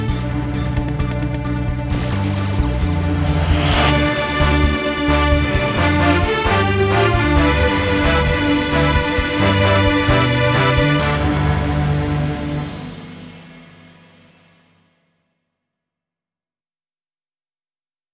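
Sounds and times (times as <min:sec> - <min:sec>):
countdown news intro: 0:00.2 - 0:13.3.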